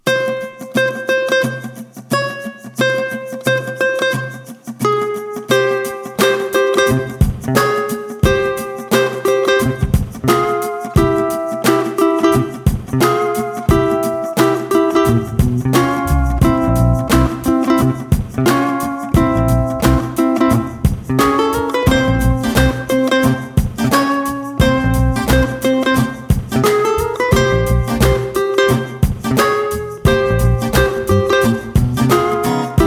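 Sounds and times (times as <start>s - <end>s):
chromatic guitar melody of picked single notes: 0.0s - 32.8s
backing track with bass and drum hits: 5.5s - 32.8s.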